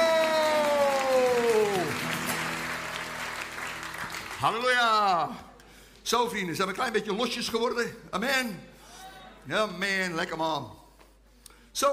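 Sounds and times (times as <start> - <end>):
audience applause: 0.0 - 4.9
speech: 4.4 - 5.5, 6.1 - 8.7, 9.5 - 10.8, 11.8 - 11.9.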